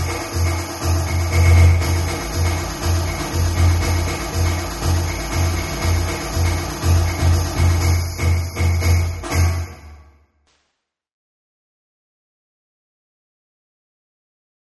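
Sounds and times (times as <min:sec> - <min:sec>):
party drums playing: 0:00.0 - 0:10.0.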